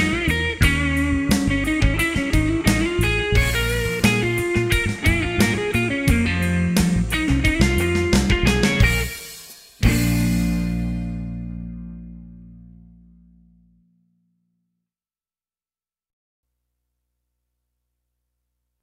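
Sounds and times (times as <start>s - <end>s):
fast tempo funk music: 0.0s - 13.0s.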